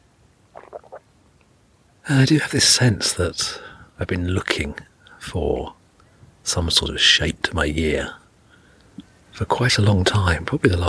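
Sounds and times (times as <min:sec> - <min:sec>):
low hum: 0:00.0 - 0:10.8
sip of tea slurping and swallowing: 0:00.6 - 0:01.0
speech: 0:02.1 - 0:05.8, 0:06.4 - 0:08.2, 0:09.4 - 0:10.8.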